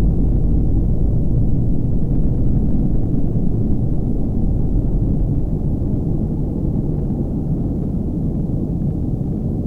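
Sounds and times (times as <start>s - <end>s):
ambience: 0.0s - 9.5s.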